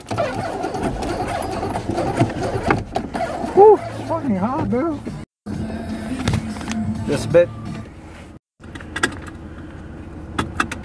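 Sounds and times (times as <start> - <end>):
car engine starting: 0.0 - 10.8
speech: 3.7 - 5.1, 7.1 - 7.6.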